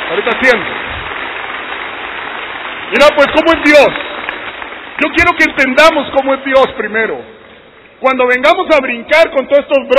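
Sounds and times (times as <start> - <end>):
audience applause: 0.0 - 6.5
speech: 0.1 - 0.8, 2.9 - 4.0, 5.0 - 7.3, 8.0 - 9.9.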